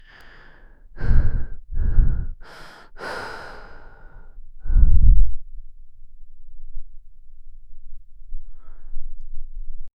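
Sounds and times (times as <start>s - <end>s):
soft meditation breathing: 0.0s - 5.4s, 8.4s - 9.2s.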